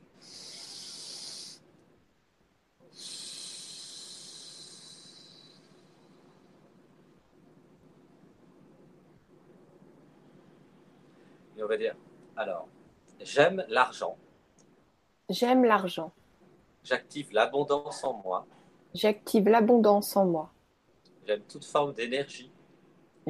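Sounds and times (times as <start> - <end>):
deep breath: 0.0 - 1.7, 2.9 - 6.9, 10.0 - 11.6
speech: 11.6 - 14.2, 15.3 - 16.2, 16.8 - 20.6, 21.3 - 22.5.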